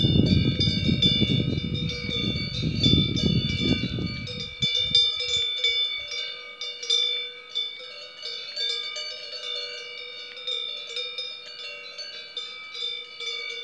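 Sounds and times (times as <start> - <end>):
cowbells in Italy in summer: 0.0 - 13.6.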